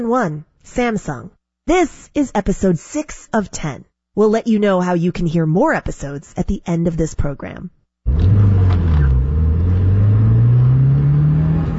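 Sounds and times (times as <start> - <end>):
speech: 0.0 - 8.4
sedan engine roaring as it accelerates through a multi-story parking lot: 8.1 - 11.7.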